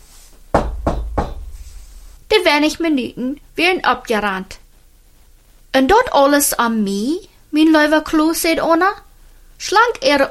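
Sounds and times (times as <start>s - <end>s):
knocking on a door: 0.5s - 2.1s
speech: 2.4s - 4.6s, 5.8s - 9.0s, 9.6s - 10.2s.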